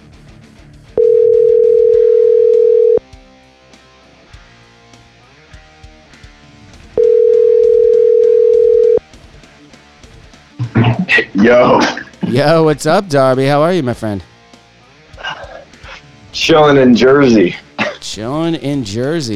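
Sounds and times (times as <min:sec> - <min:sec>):
outgoing phone call ringing tone: 0:01.0 - 0:03.0, 0:07.0 - 0:09.0
soft music: 0:01.0 - 0:03.0, 0:06.7 - 0:09.2, 0:10.5 - 0:19.3
speech: 0:11.4 - 0:14.3, 0:16.5 - 0:19.3.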